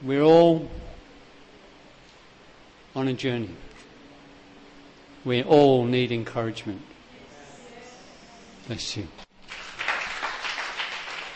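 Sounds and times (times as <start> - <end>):
speech: 0.0 - 0.8, 3.0 - 3.7, 5.2 - 6.9, 8.6 - 9.2
audience applauding: 9.4 - 11.3.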